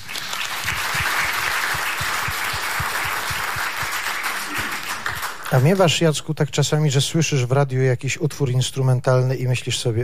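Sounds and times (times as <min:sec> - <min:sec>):
applause: 0:00.0 - 0:06.0
speech: 0:05.5 - 0:10.0.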